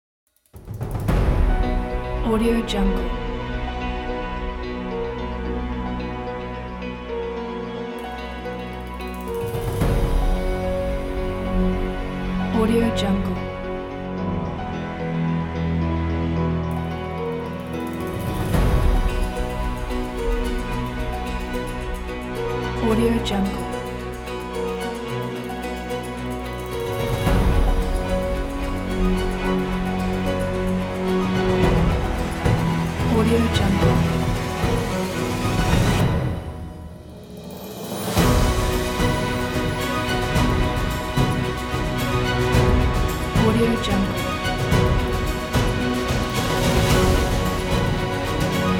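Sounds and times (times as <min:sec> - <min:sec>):
uplifting cinematic happy epic music: 0:00.6 - 0:48.7.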